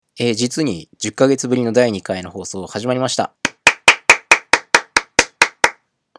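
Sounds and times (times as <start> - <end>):
speech: 0.2 - 3.4
one person clapping hands: 3.5 - 5.8.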